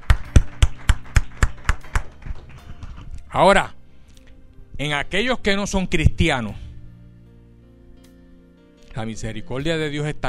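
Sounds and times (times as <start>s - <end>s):
audience applauding: 0.0s - 3.2s
speech: 3.3s - 3.8s, 4.8s - 6.6s, 9.0s - 10.2s.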